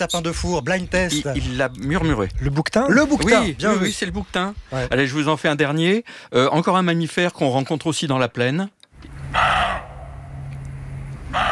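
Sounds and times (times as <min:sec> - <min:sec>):
speech: 0:00.0 - 0:09.6
roe deer barking: 0:09.3 - 0:10.2, 0:11.3 - 0:11.5.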